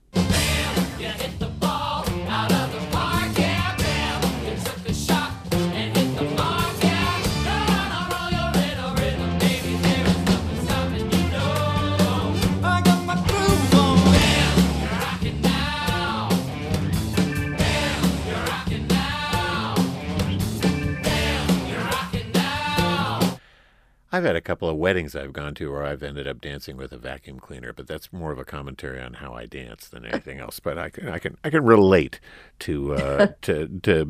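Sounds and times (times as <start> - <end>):
full band with driving beat: 0.2 - 23.4, 33.0 - 33.3
lead voice singing musical theatre number: 0.3 - 16.4, 17.2 - 19.9, 21.0 - 23.4, 32.9 - 33.4
speech: 24.2 - 34.0.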